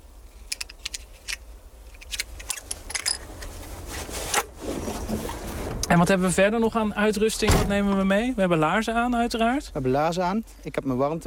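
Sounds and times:
low steady hum: 0.0 - 11.2
bullets loaded into a hunting rifle: 0.4 - 3.5
speech: 5.9 - 11.2.

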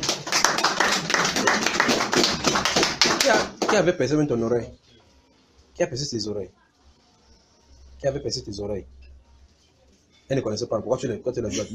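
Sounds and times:
audience applauding: 0.0 - 3.9
speech: 3.3 - 4.8, 5.8 - 6.6, 8.0 - 9.0, 10.3 - 11.7.

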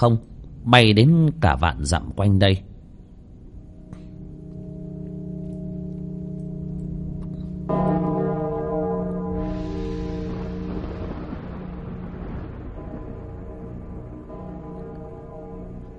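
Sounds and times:
speech: 0.0 - 2.7
deep bell tolling inside an ancient city: 3.4 - 15.9.

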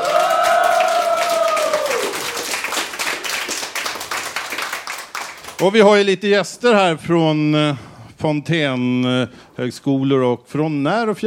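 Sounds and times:
live studio audience cheering in the Fountain House clubhouse kitchen: 0.0 - 2.8
live studio audience applause in the Fountain House clubhouse kitchen: 0.0 - 5.7
speech: 5.6 - 11.2.

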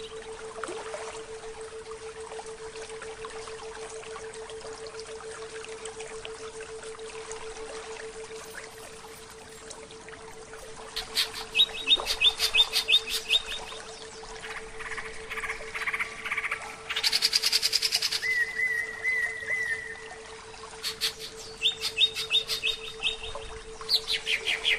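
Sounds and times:
Oriental magpie-robin singing a soft rambling series of whistled notes: 11.0 - 20.0, 20.8 - 24.7.

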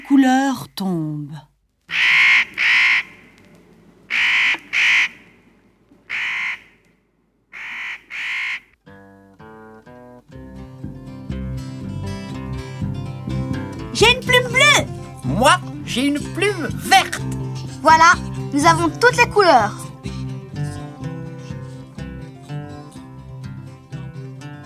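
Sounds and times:
speech: 0.2 - 1.5, 15.9 - 19.8
black bird cawing: 1.9 - 8.8
bright melodic music: 8.9 - 24.6.

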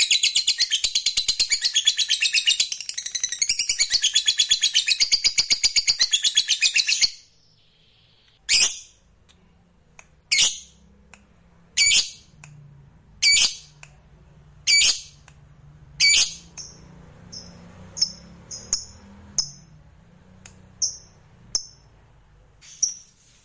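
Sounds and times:
fighter-type lovebird singing energetically in high-pitched chatter: 0.0 - 9.0, 11.8 - 12.3, 14.7 - 15.2, 16.0 - 19.6.

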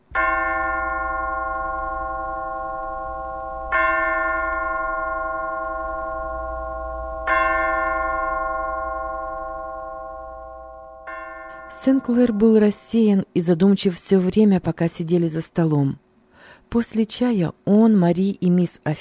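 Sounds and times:
bell ringing to call people to tea: 0.2 - 12.7
speech: 11.8 - 16.0, 16.7 - 18.9.

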